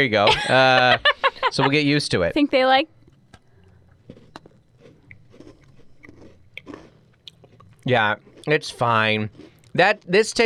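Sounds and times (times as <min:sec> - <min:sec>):
speech: 0:00.0 - 0:03.0, 0:07.9 - 0:10.4
low steady background: 0:00.0 - 0:10.4
laughter: 0:00.1 - 0:02.0
crunchy biting and chewing of a butter cookie shortbread: 0:03.0 - 0:10.4.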